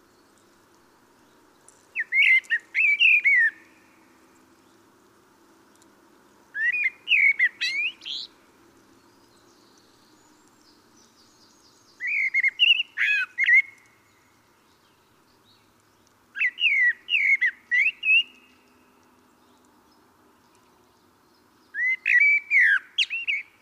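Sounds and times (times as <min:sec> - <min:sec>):
common blackbird warbling: 0:02.0 - 0:03.6, 0:06.6 - 0:08.3, 0:12.0 - 0:13.9, 0:16.4 - 0:18.6, 0:21.7 - 0:23.5.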